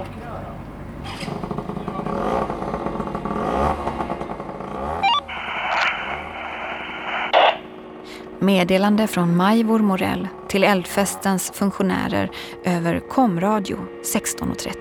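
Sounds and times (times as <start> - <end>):
motorbike engine revving: 0.0 - 8.0
speech: 8.4 - 14.7.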